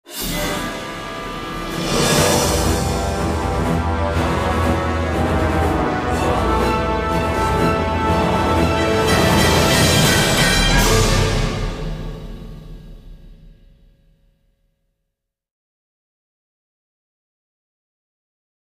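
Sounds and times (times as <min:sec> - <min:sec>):
attack music: 0:00.0 - 0:13.8.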